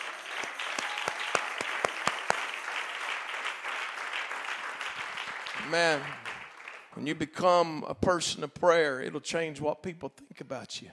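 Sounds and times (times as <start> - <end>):
audience clapping hands: 0.0 - 7.4
speech: 5.6 - 6.3, 7.0 - 10.9.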